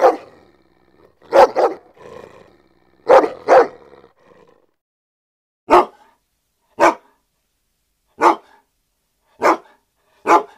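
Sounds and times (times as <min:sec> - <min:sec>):
German Shepherd barking: 0:00.0 - 0:00.5, 0:01.2 - 0:02.0, 0:03.0 - 0:04.1, 0:05.7 - 0:06.2, 0:06.8 - 0:07.2, 0:08.2 - 0:08.6, 0:09.4 - 0:10.5.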